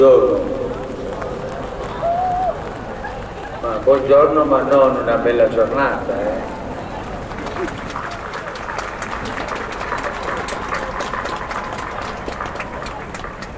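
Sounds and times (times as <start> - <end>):
speech: 0.0 - 0.6, 3.9 - 6.5
large outdoor crowd clapping holding umbrellas: 0.0 - 5.5, 6.5 - 13.5
murmuring voices: 0.0 - 13.5.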